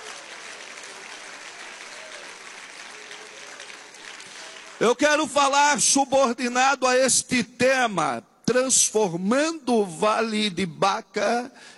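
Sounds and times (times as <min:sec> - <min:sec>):
audience applauding: 0:00.0 - 0:05.1
speech: 0:04.8 - 0:11.7.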